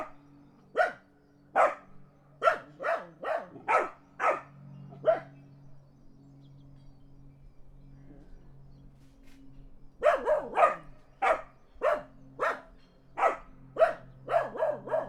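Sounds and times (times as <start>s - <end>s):
dogs barking in the country: 0.8s - 1.0s, 1.6s - 5.4s, 10.0s - 15.0s.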